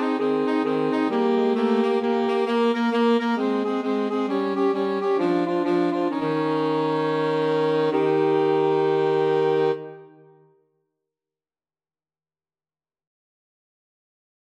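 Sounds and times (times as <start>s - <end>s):
two alto saxophones: 0.0s - 10.4s.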